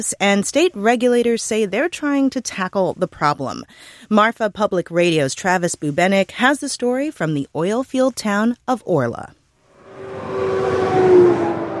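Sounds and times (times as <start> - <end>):
speech: 0.0 - 9.4
big rig truck roaring down the highway: 9.8 - 11.7.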